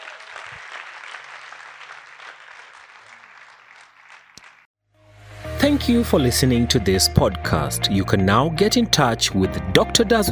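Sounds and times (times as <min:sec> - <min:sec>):
audience clapping: 0:00.0 - 0:04.7
speech: 0:05.6 - 0:10.3.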